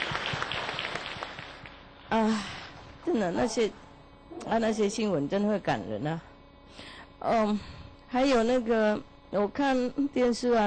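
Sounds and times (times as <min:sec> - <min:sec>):
audience applause after a talk: 0:00.0 - 0:01.7
speech: 0:02.1 - 0:03.8, 0:04.4 - 0:10.6.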